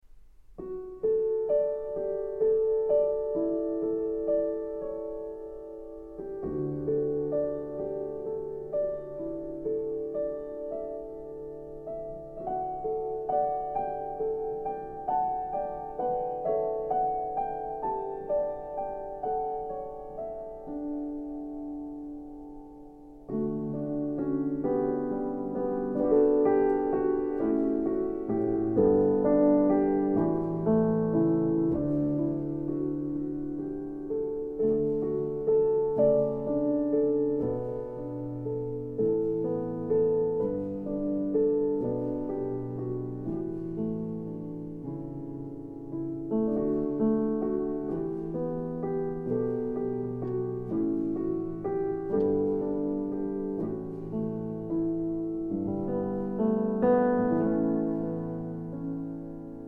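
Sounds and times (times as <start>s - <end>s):
grand piano: 0.0s - 59.6s.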